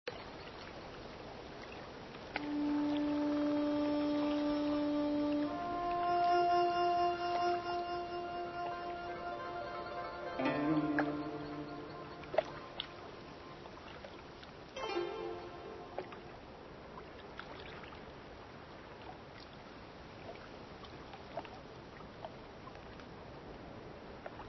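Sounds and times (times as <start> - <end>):
moon ambience: 2.3 - 16.6.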